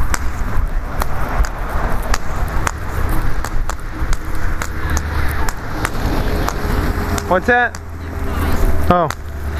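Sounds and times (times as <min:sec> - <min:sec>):
car driving down the street: 0:00.0 - 0:09.5
footstep-like taps: 0:01.0 - 0:07.9
speech: 0:07.3 - 0:07.8, 0:08.9 - 0:09.2.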